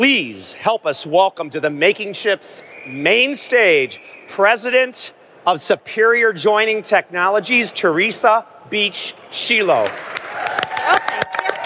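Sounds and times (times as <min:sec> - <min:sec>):
speech: 0:00.0 - 0:10.2
audience applause: 0:09.9 - 0:11.6.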